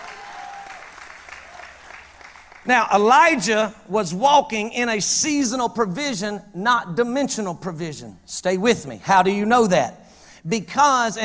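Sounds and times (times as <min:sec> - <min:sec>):
audience clapping: 0:00.0 - 0:02.7
speech: 0:02.6 - 0:11.2.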